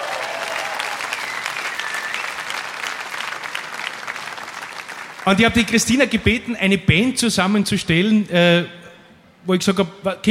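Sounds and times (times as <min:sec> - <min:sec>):
audience applause: 0:00.0 - 0:05.6
speech: 0:05.3 - 0:08.8, 0:09.4 - 0:10.2.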